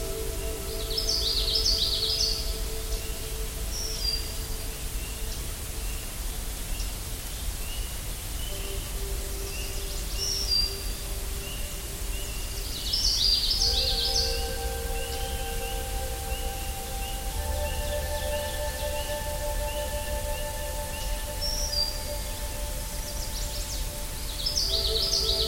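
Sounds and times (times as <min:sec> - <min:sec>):
birds singing: 0:00.0 - 0:25.4.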